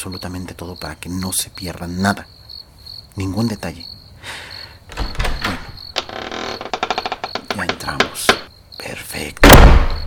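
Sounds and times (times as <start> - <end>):
speech: 0.0 - 2.4, 3.2 - 4.5, 7.8 - 10.0
door opening with a horrible creak: 4.9 - 8.5.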